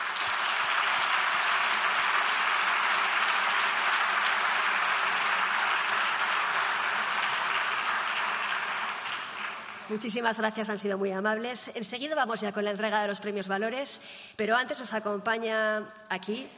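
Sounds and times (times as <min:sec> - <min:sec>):
audience applause: 0:00.0 - 0:09.9
speech: 0:09.9 - 0:16.5.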